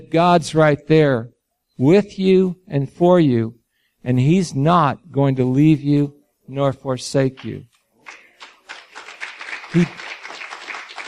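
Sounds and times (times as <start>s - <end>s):
speech: 0.0s - 8.2s, 9.7s - 10.1s
crowd applause: 8.0s - 11.0s.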